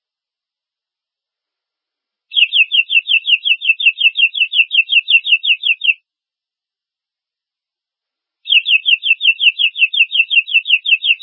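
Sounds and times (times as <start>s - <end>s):
domestic canary trill: 2.3s - 6.0s, 8.5s - 11.2s.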